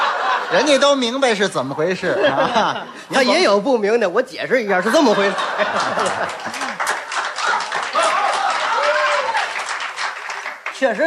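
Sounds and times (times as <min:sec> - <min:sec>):
laughter: 0:00.0 - 0:01.0, 0:01.9 - 0:03.4, 0:04.7 - 0:08.8, 0:10.8 - 0:11.0
speech: 0:00.5 - 0:06.8, 0:10.8 - 0:11.0
hand clapping: 0:05.8 - 0:11.0.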